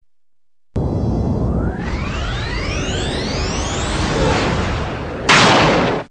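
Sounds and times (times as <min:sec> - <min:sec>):
warp effect: 0:00.8 - 0:06.0.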